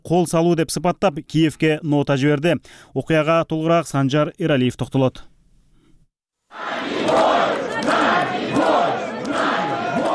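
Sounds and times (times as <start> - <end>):
speech: 0.1 - 5.3
protesters chanting outside the Russian embassy in Kyiv: 6.5 - 10.1.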